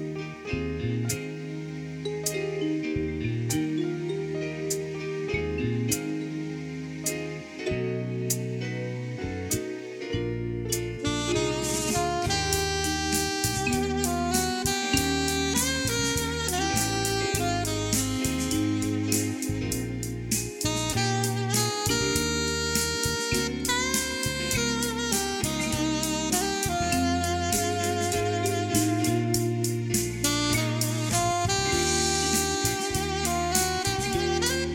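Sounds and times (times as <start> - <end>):
alto saxophone: 0.1 - 34.7.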